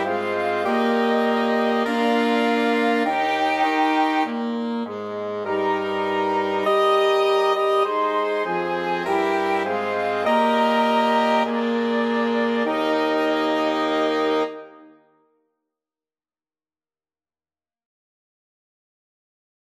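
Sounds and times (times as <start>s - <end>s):
flexible mixed ensemble of 4 players: 0.0s - 14.9s.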